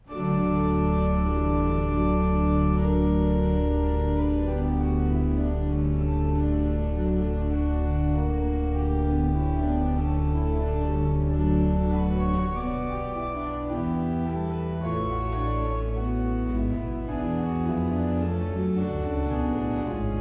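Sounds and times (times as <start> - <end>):
prelude in D major: 0.0 - 20.2.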